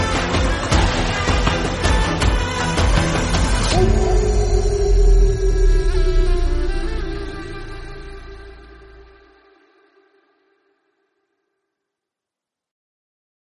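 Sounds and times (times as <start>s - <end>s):
instrumental music: 0.0s - 10.6s.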